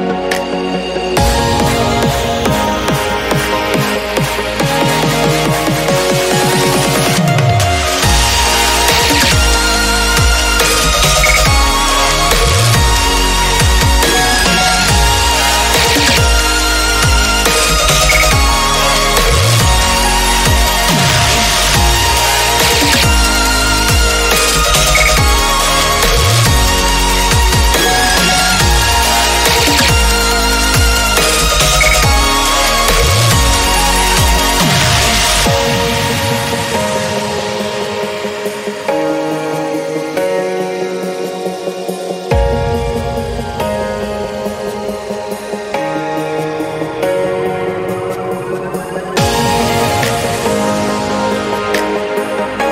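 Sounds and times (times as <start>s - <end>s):
live electronics beat: 0.2s - 52.6s.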